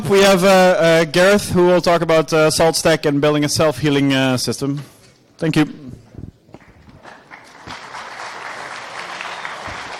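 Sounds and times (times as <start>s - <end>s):
speech: 0.1s - 5.9s
audience applause: 7.0s - 9.9s.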